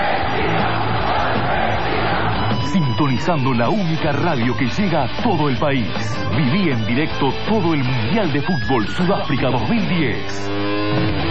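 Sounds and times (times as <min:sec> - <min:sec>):
football crowd shouting in unison at the 2010 World Cup in South Africa: 0:00.0 - 0:02.7
speech: 0:03.0 - 0:11.2.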